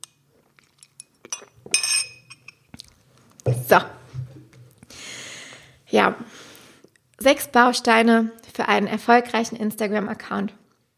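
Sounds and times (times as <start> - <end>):
glass clinking: 1.0 - 2.7
speech: 3.7 - 4.0, 5.9 - 6.4, 7.2 - 10.6.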